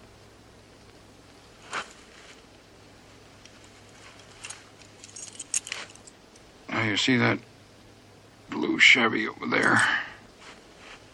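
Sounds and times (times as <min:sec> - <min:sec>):
keys jingling as they are pulled from a pocket: 0:04.1 - 0:06.2
speech: 0:06.9 - 0:07.5, 0:08.8 - 0:10.0.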